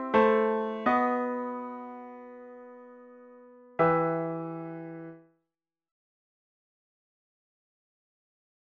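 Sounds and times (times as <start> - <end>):
piano exercise on the E harmonic minor scale: 0.0 - 5.3.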